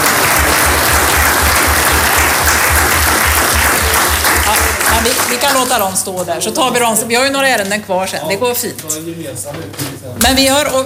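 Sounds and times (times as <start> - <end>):
room full of people clapping: 0.0 - 6.1
speech: 5.3 - 10.8.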